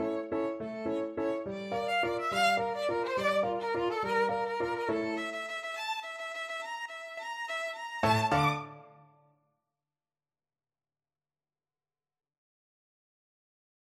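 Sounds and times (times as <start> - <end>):
violin: 0.0 - 9.1
piano: 0.0 - 9.2.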